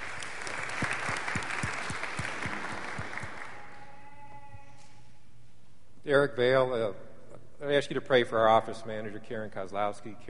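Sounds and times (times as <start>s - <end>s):
church congregation applauding to welcome visitors during a service: 0.0s - 4.5s
speech: 6.1s - 10.2s.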